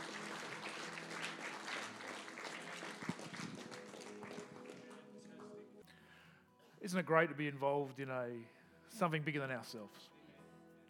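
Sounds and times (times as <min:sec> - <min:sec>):
audience clapping: 0:00.0 - 0:05.6
speech: 0:06.9 - 0:10.2.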